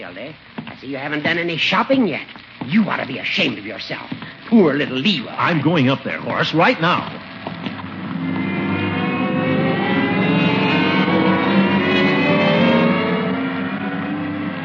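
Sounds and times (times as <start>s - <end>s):
speech: 0.1s - 7.2s
escalator motor humming in a store: 7.5s - 14.6s.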